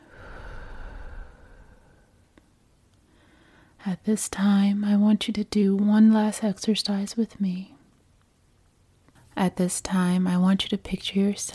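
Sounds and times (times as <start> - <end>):
slow deep exhale after holding a breath: 0.0 - 2.2
speech: 3.8 - 7.7, 9.4 - 11.5.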